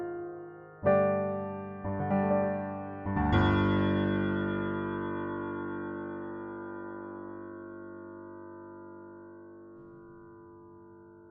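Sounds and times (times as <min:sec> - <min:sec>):
Yamaha B2 piano: 0:00.0 - 0:08.8.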